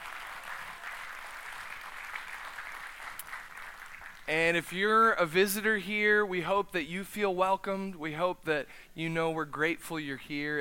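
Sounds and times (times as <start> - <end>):
congregation applauding after a baptism: 0.0 - 5.1
speech: 4.3 - 10.5.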